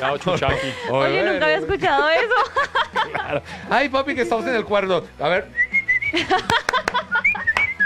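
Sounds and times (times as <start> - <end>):
laughter: 0.0 - 4.4, 6.1 - 7.8
speech: 0.0 - 6.6
person whistling: 5.6 - 6.2, 7.1 - 7.8
person clapping: 6.4 - 7.8.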